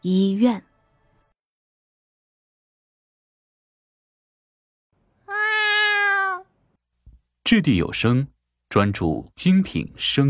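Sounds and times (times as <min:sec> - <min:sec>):
speech: 0:00.0 - 0:00.7, 0:07.5 - 0:10.2
cat meowing: 0:05.2 - 0:06.5.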